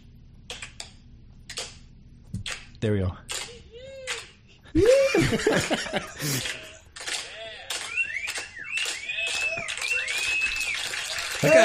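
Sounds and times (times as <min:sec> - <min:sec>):
speech: 0:02.8 - 0:03.4, 0:04.7 - 0:06.6
laughter: 0:04.6 - 0:07.8, 0:11.3 - 0:11.6
slow clap: 0:06.2 - 0:11.6.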